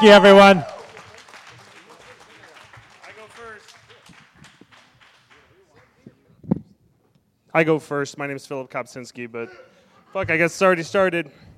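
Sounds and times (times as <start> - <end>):
speech: 0.0 - 0.7, 7.6 - 11.5
audience round of applause: 0.0 - 5.8.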